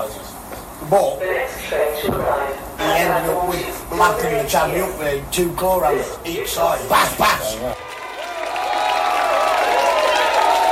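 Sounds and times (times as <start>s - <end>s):
speech: 0.9s - 7.8s
audience applause at live concert: 7.8s - 10.7s
people cheering and whooping: 7.8s - 10.7s.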